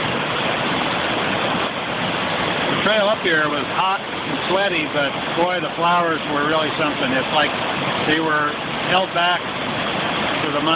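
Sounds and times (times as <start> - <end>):
fast-flowing river swollen with snowmelt: 0.0 - 10.7
speech: 2.9 - 9.5, 10.5 - 10.7.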